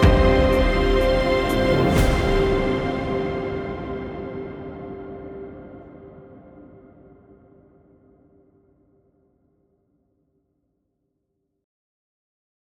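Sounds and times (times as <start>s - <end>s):
epic trailer music: 0.0s - 5.6s.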